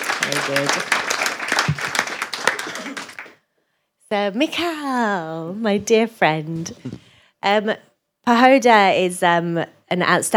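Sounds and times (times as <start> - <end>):
audience round of applause: 0.0 - 3.4
speech: 0.2 - 1.8, 4.1 - 10.3.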